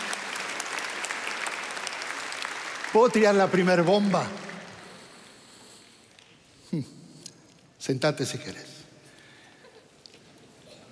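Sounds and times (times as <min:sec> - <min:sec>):
audience applause: 0:00.0 - 0:05.0
speech: 0:02.9 - 0:04.5, 0:06.7 - 0:07.0, 0:07.8 - 0:08.7.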